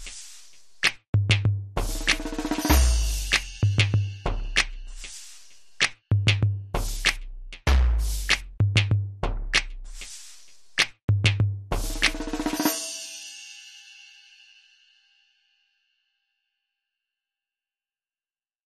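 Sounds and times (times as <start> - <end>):
music beat: 0.0 - 12.9.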